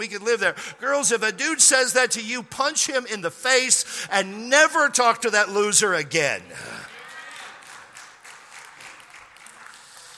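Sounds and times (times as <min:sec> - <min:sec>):
speech: 0:00.0 - 0:06.8
audience clapping in unison: 0:06.9 - 0:10.1.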